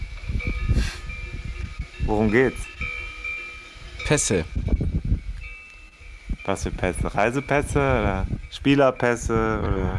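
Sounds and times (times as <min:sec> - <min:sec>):
cowbells: 0:00.0 - 0:09.9
wind: 0:00.0 - 0:09.9
heavy breathing: 0:00.4 - 0:01.2
speech: 0:02.1 - 0:02.7, 0:04.1 - 0:04.6, 0:06.5 - 0:09.9.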